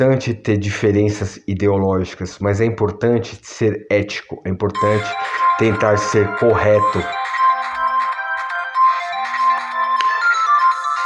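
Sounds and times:
speech: 0.0 - 7.2
telephone ringtone of an incoming call: 4.8 - 11.0.

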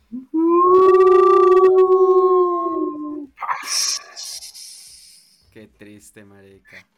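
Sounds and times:
person imitating an alarm siren as improvised spoiler alarm: 0.1 - 3.2
speech: 6.0 - 6.9.

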